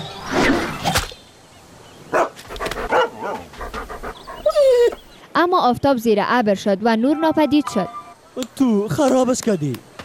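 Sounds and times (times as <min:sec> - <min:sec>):
dog panting: 0:02.5 - 0:05.1
speech: 0:05.4 - 0:09.9.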